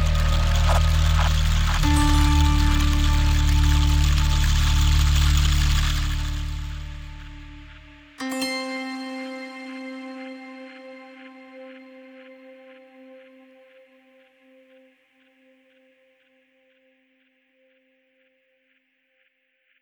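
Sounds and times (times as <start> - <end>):
mysterious zither: 0.0 - 13.9.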